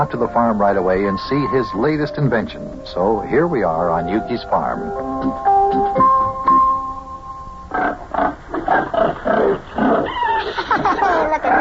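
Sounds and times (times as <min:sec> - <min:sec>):
speech: 0:00.0 - 0:06.2
pigs grunting in a farm pen: 0:07.7 - 0:10.7
laughter: 0:10.3 - 0:11.6.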